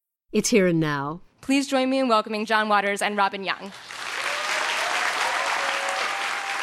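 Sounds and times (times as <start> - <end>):
speech: 0.3 - 3.9
audience applause: 3.7 - 6.6.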